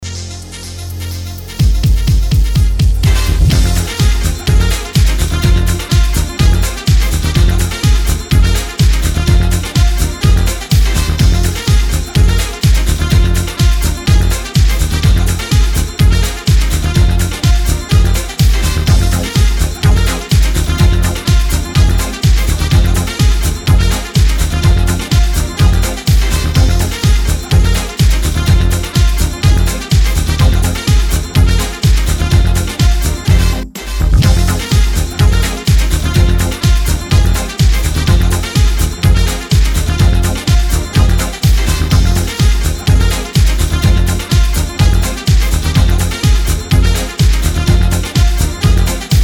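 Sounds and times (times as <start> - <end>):
Latin samba mix: 0.0 - 49.2.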